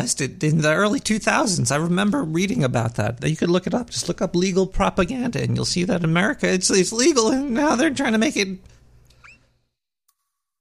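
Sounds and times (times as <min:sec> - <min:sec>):
speech: 0:00.0 - 0:08.8
short sharp squeak: 0:09.1 - 0:09.6.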